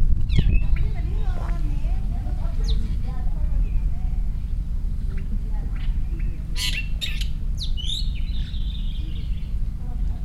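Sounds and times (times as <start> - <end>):
long-tailed shrike Lanius schach at Cape Nanhui, Shanghai: 0.3 - 10.2.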